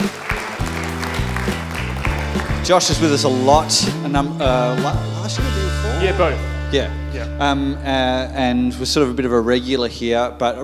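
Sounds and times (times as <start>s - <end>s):
audience applause: 0.0s - 3.1s
speech: 2.7s - 10.6s.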